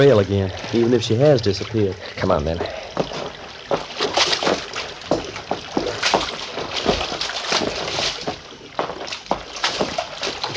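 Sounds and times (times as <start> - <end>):
speech: 0.0 - 3.2
footsteps wading through shallow creek water: 0.0 - 10.5.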